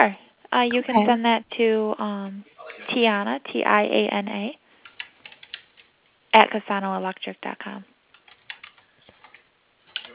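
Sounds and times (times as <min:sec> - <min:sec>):
speech: 0:00.0 - 0:04.6, 0:06.3 - 0:07.9
typing on a computer keyboard: 0:04.8 - 0:05.9, 0:08.1 - 0:10.1.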